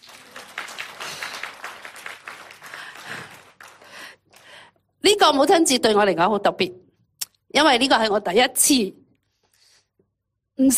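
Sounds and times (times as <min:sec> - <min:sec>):
audience applause for mothers: 0:00.0 - 0:04.6
speech: 0:05.0 - 0:06.8, 0:07.6 - 0:09.0.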